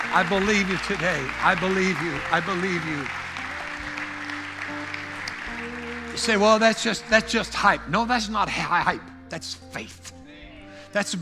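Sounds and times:
audience clapping: 0.0 - 7.8
speech: 0.1 - 3.2, 6.2 - 10.2, 10.9 - 11.1.

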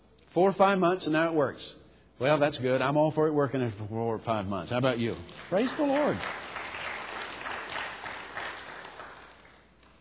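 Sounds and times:
speech: 0.4 - 6.4
light polite golf clap from a small audience: 5.0 - 9.9.

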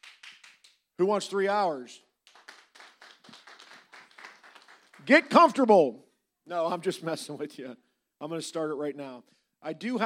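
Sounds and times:
audience clapping to vote on a show's length: 0.0 - 0.8, 2.2 - 5.5
speech: 1.0 - 2.1, 5.0 - 10.0.

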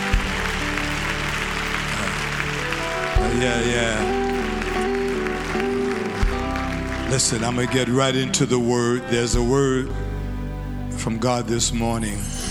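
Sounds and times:
audience clapping hands: 0.0 - 8.5
speech: 3.3 - 4.2, 7.1 - 10.1, 11.0 - 12.4.

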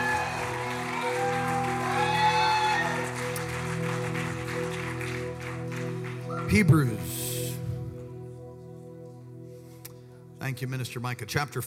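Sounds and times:
audience shouting: 0.0 - 3.2
audience clapping: 0.0 - 7.0
speech: 6.5 - 7.2, 10.5 - 11.6.

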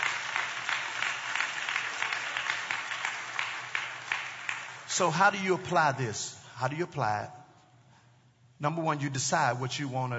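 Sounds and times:
audience hand clapping: 0.0 - 5.8
speech: 4.9 - 7.4, 8.6 - 10.1.

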